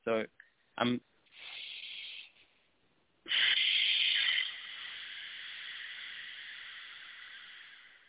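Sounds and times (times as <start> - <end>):
speech: 0.0 - 1.1
breath sucked in through throat and exhaled: 1.3 - 2.7, 3.3 - 8.0.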